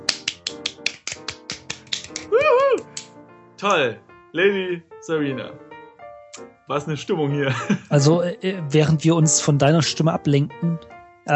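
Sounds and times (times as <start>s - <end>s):
hands clapping in a quick steady rhythm: 0.0s - 3.9s
short sung or cheering voice: 2.3s - 2.9s
speech: 3.6s - 5.7s, 6.7s - 11.3s
laughter: 7.5s - 7.9s.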